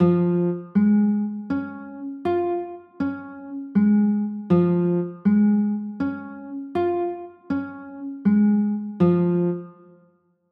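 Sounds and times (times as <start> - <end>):
D-flat major chords: 0.0 - 10.0.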